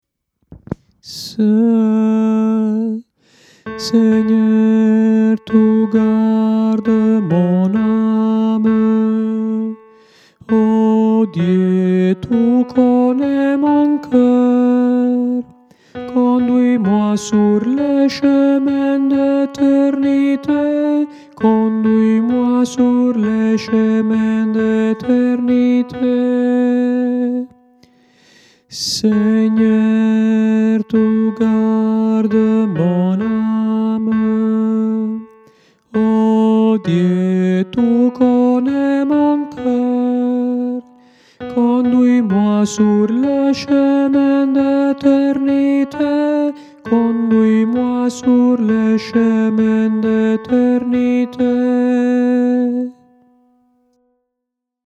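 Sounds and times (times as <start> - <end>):
tenor singing: 0.6 - 27.7, 28.7 - 53.1.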